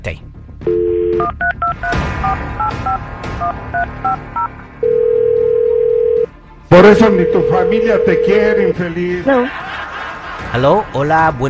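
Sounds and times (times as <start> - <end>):
speech: 0.0 - 5.0, 6.7 - 9.9, 10.5 - 11.4
landline phone dial tone: 0.7 - 1.8, 4.8 - 6.3, 7.2 - 8.8
phone ring tone: 0.7 - 1.9, 3.8 - 6.3, 7.0 - 8.8
laughter: 9.2 - 11.4.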